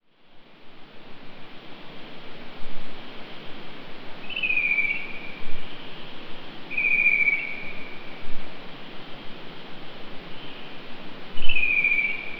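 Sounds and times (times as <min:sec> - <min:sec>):
bird whistling at night: 0:04.2 - 0:05.4, 0:06.7 - 0:08.0, 0:11.4 - 0:12.3.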